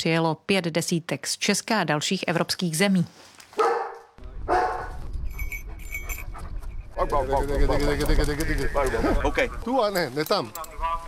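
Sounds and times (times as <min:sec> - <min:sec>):
speech: 0:00.0 - 0:03.7, 0:07.0 - 0:11.0
mountain rescue dogs barking loudly: 0:03.6 - 0:05.0.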